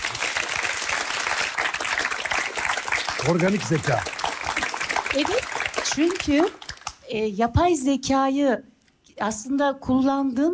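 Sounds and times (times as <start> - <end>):
audience applause: 0.0 - 6.9
speech: 3.2 - 4.2, 5.1 - 10.5.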